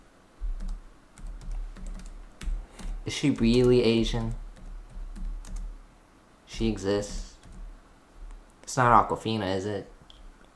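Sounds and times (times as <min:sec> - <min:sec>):
typing on a computer keyboard: 0:00.4 - 0:05.8, 0:06.6 - 0:08.4
low thumping hum: 0:00.4 - 0:08.5
speech: 0:03.1 - 0:04.4, 0:06.6 - 0:07.3, 0:08.7 - 0:09.9.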